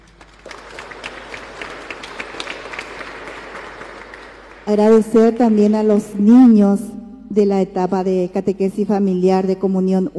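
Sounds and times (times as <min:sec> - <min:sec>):
audience applause: 0:00.0 - 0:04.7
speech: 0:04.7 - 0:10.1.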